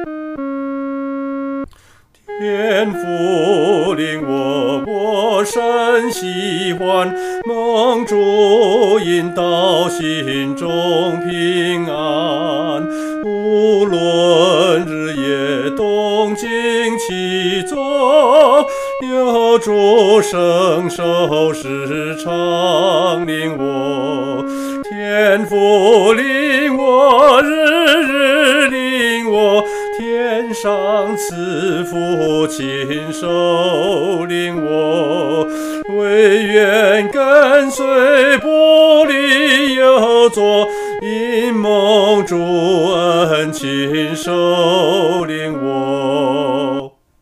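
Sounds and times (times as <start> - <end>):
solo singing: 1.7 - 47.0.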